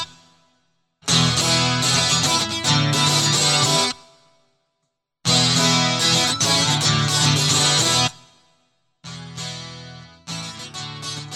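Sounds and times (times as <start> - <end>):
guitar loop: 1.0 - 4.3, 5.2 - 8.4, 9.0 - 11.3.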